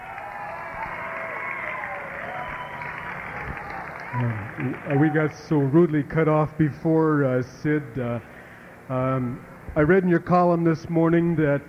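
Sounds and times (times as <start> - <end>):
audience applause: 0.0 - 5.7
speech: 4.2 - 11.6.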